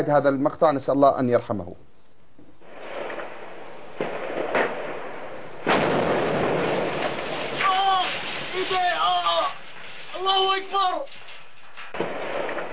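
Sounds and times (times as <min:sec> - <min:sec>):
speech: 0:00.0 - 0:01.9, 0:08.6 - 0:09.2, 0:10.2 - 0:11.2
tank firing: 0:02.8 - 0:10.1, 0:11.1 - 0:12.7
people shouting: 0:07.6 - 0:09.6.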